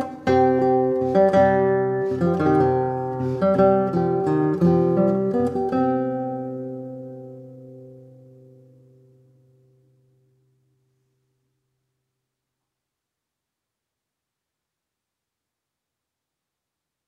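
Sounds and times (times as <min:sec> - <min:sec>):
three guitars playing: 0:00.0 - 0:10.4.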